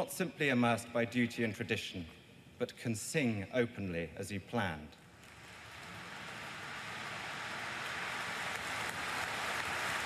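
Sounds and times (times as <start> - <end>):
speech: 0.0 - 5.0
huge crowd applauding outside church: 5.5 - 10.0.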